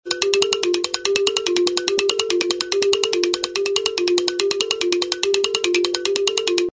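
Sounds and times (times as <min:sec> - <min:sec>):
wood blocks newsroom beat: 0:00.0 - 0:06.7.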